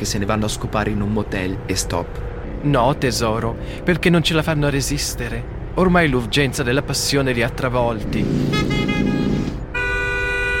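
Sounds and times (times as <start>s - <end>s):
speech: 0.0s - 8.7s
car horn honking at an overtaking car: 8.4s - 10.5s.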